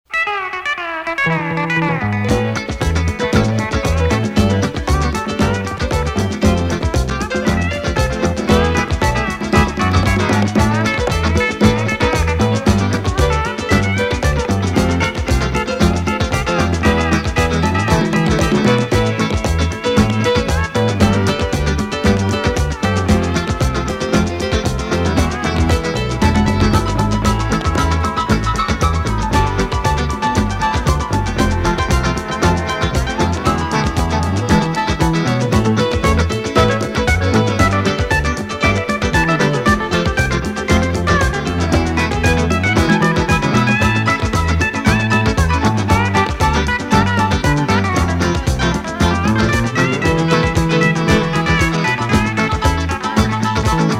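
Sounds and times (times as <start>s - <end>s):
long crossover instrumental music: 0.0s - 53.9s.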